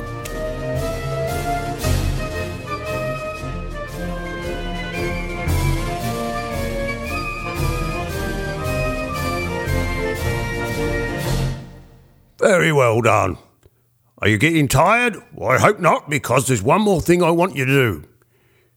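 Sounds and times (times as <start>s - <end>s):
march music: 0.0s - 12.0s
voice-over narration: 12.4s - 13.6s, 14.2s - 18.1s.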